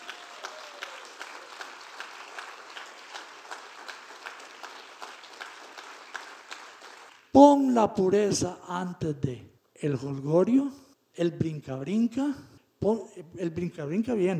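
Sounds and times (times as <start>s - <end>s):
audience applause: 0.0s - 7.3s
speech: 7.4s - 14.3s.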